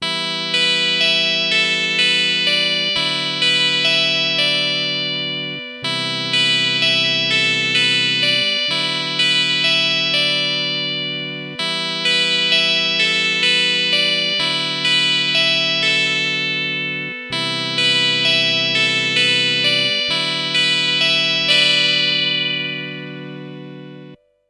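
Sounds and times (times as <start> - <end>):
Hammond SK1 organ with Vox Continental sound: 0.0 - 24.2.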